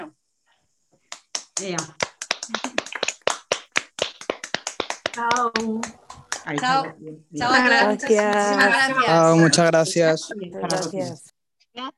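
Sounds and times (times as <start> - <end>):
small group applauding with hand claps: 1.1 - 6.9, 8.1 - 8.6
speech: 1.6 - 2.9, 5.2 - 11.9.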